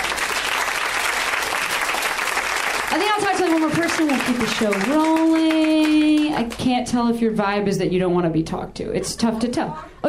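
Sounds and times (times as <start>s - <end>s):
audience applause: 0.0s - 6.6s
speech: 3.5s - 10.0s.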